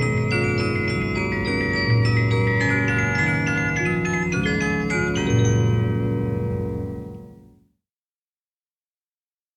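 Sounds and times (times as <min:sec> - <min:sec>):
Regina music box: 0:00.0 - 0:07.5.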